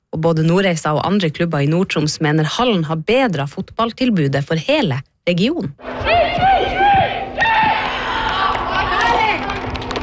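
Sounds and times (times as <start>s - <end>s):
speech: 0.2s - 5.9s
teammates cheering after a goal at training: 5.9s - 10.0s.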